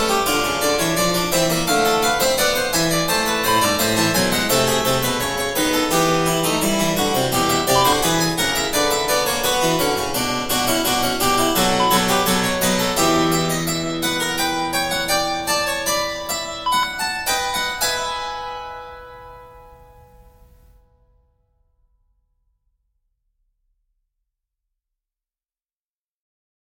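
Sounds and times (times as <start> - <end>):
classical fugue: 0.0 - 20.7.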